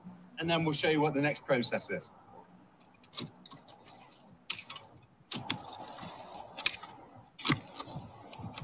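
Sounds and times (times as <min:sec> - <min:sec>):
speech: 0:00.4 - 0:02.2
spade digging a fence post hole: 0:03.1 - 0:08.6.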